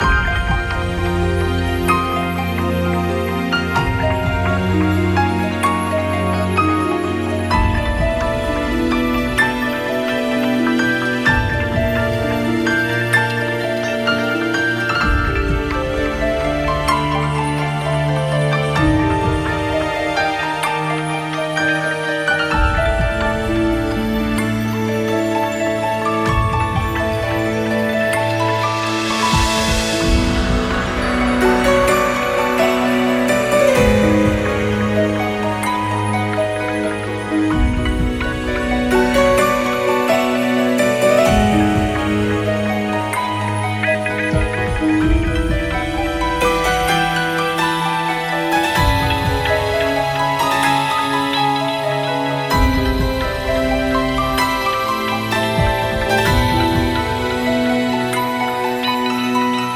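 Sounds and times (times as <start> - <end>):
calm music loop: 0.0 - 59.7.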